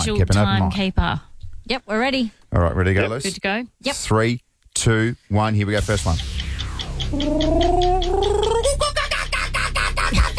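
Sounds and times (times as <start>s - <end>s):
speech: 0.0s - 6.3s, 7.1s - 8.5s
person imitating a kookaburra call: 7.0s - 10.2s.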